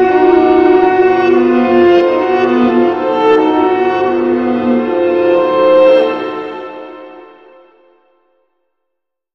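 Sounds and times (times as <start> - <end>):
synthesizer orchestra: 0.0 - 8.0.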